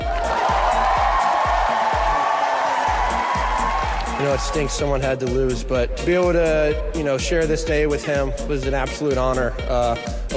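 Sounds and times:
crowd applause after tennis match: 0.0s - 4.7s
speech: 4.2s - 10.3s.

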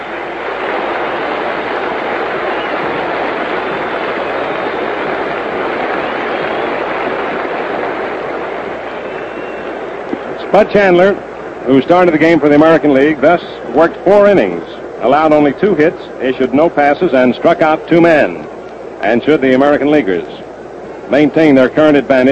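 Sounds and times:
stadium crowd applause: 0.0s - 10.6s
speech: 10.5s - 20.4s, 21.1s - 22.3s.

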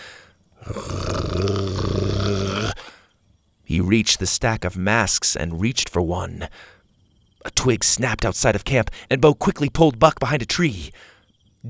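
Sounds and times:
dog growling: 0.6s - 2.9s
speech: 3.8s - 6.8s, 7.4s - 11.6s.

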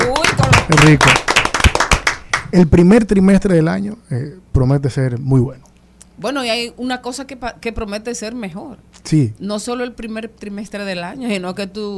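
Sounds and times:
hands clapping: 0.0s - 2.5s
speech: 0.7s - 1.2s, 2.5s - 11.9s.

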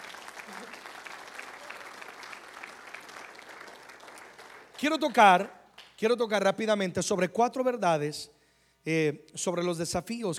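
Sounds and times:
audience clapping loudly: 0.0s - 6.0s
speech: 4.8s - 10.3s.

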